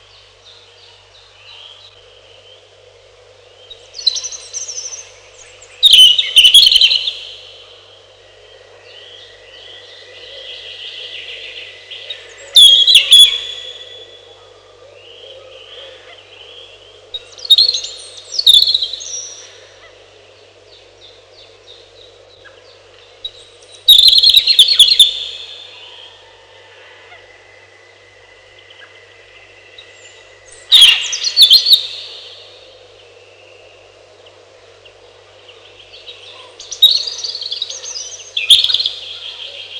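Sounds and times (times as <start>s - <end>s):
birds: 0.0s - 39.7s
robin: 3.8s - 8.0s, 8.9s - 20.0s, 23.3s - 32.7s, 35.4s - 39.7s.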